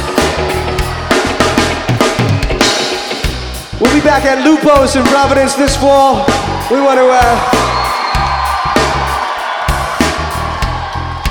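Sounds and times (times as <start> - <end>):
crowd cheering and whooping at a live show in a tent: 0.0 - 3.2, 6.0 - 11.2
speech: 4.0 - 7.6.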